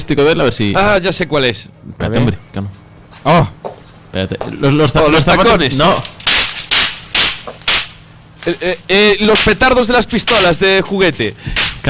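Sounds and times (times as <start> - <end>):
speech: 0.1 - 6.2, 8.4 - 11.8
bubble wrap popping: 5.8 - 8.6, 9.2 - 10.8.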